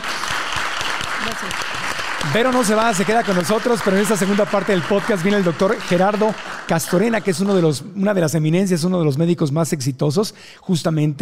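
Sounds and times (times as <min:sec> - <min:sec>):
audience applause: 0:00.0 - 0:07.8
speech: 0:01.2 - 0:11.2.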